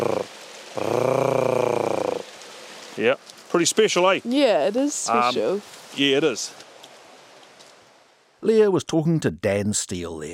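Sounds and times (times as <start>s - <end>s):
voice imitating harsh purring call of female bird: 0.0s - 2.3s
speech: 3.0s - 6.6s, 8.5s - 10.3s.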